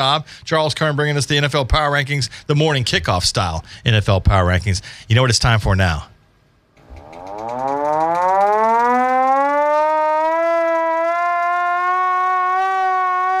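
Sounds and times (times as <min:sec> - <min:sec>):
speech: 0:00.0 - 0:06.1
siren alarm sound effect: 0:06.8 - 0:13.3.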